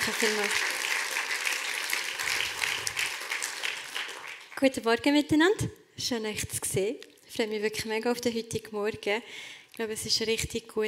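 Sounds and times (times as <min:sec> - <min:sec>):
audience applause: 0:00.0 - 0:04.6
speech: 0:00.1 - 0:00.7, 0:04.6 - 0:10.8.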